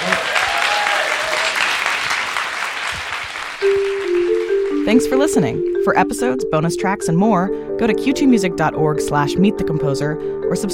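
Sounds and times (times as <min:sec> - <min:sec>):
audience applause: 0:00.0 - 0:04.9
speech: 0:04.9 - 0:10.7.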